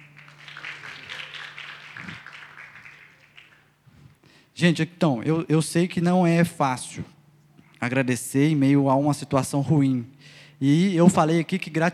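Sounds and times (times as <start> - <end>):
round of applause from a group: 0.0 - 4.1
speech: 4.6 - 7.2, 7.8 - 11.9.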